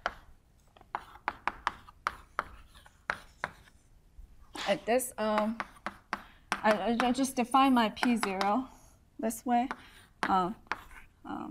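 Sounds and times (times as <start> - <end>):
notation being written by hand: 0.0 - 3.8, 5.3 - 7.3, 8.0 - 8.6, 9.6 - 11.1
speech: 4.7 - 5.7, 6.6 - 10.6.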